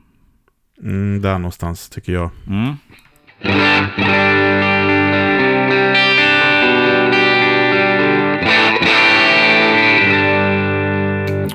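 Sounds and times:
speech: 0:00.8 - 0:04.7
distorted electric guitar chords through an amplifier: 0:03.4 - 0:11.5.

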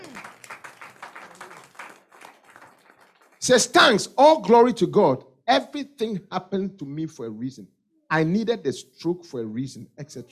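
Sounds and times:
audience clapping: 0:00.0 - 0:04.0
speech: 0:03.4 - 0:10.3.

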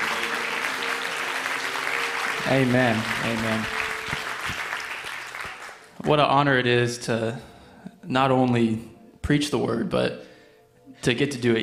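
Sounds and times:
audience hand clapping: 0:00.0 - 0:06.2
speech: 0:02.4 - 0:03.8, 0:06.0 - 0:07.5, 0:08.1 - 0:10.3, 0:11.0 - 0:11.6.

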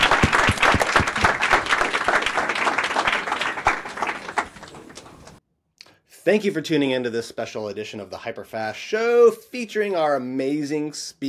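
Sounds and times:
audience applause: 0:00.0 - 0:05.4
speech: 0:06.3 - 0:11.2.

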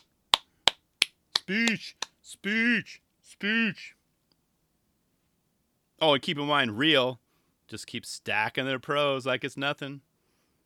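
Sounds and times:
soundboard clapping sound effect: 0:00.0 - 0:02.1
speech: 0:01.5 - 0:04.0, 0:06.0 - 0:10.1.

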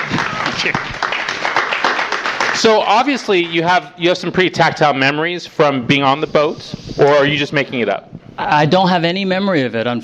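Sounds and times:
audience applause: 0:00.0 - 0:03.9
speech: 0:00.6 - 0:01.0, 0:02.6 - 0:10.0.

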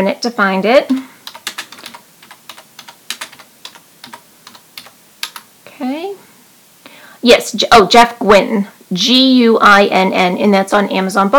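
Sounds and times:
speech: 0:00.0 - 0:01.0, 0:07.2 - 0:11.3
typing on a computer keyboard: 0:00.9 - 0:05.5.

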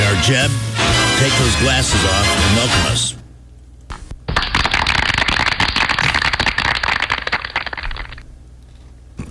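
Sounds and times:
speech: 0:00.2 - 0:03.2
crowd clapping: 0:04.3 - 0:08.2.

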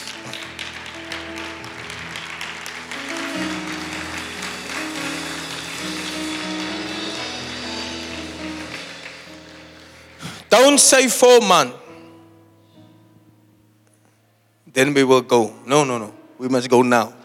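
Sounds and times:
audience clapping: 0:00.0 - 0:11.2
speech: 0:10.5 - 0:11.8, 0:14.8 - 0:17.2.

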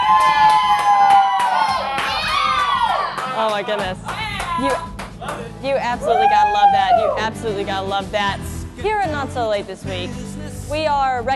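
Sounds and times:
live studio audience whooping: 0:00.0 - 0:03.4, 0:06.0 - 0:07.3
live studio audience clapping: 0:00.0 - 0:05.6
speech: 0:03.6 - 0:04.9, 0:05.6 - 0:11.3.

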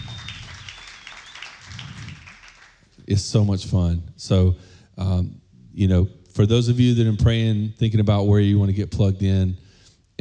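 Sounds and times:
church congregation applauding the children's ministry team: 0:00.0 - 0:03.0
speech: 0:03.1 - 0:09.6.

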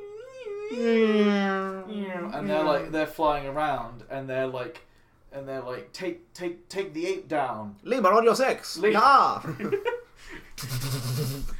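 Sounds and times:
lower wailing tone: 0:00.0 - 0:02.4
voice imitating a police siren: 0:00.0 - 0:02.4
speech: 0:00.7 - 0:01.3, 0:02.3 - 0:11.5.

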